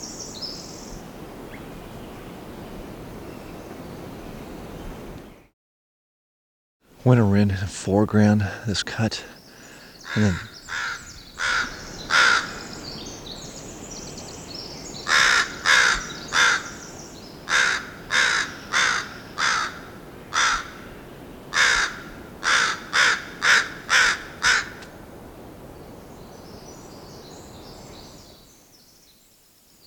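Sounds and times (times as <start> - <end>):
speech: 7.0 - 9.4, 10.1 - 10.9
adult Northwestern crows cawing: 9.5 - 12.8, 15.0 - 24.8.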